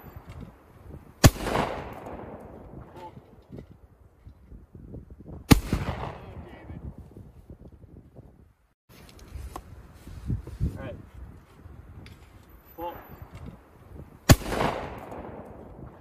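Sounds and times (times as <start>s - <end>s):
gunshots at a gun range: 1.2s - 3.1s, 5.5s - 6.7s, 14.3s - 16.0s.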